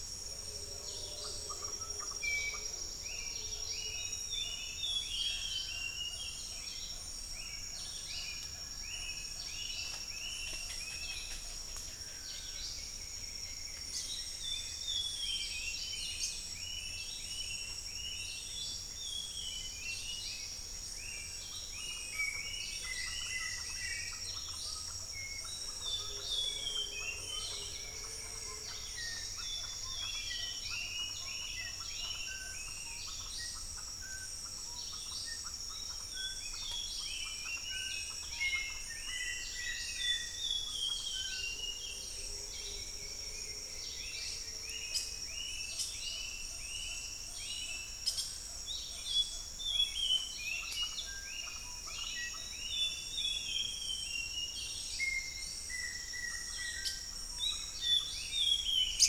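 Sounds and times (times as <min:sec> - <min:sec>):
tropical dawn chorus of birds in Panama: 0:00.0 - 0:59.0.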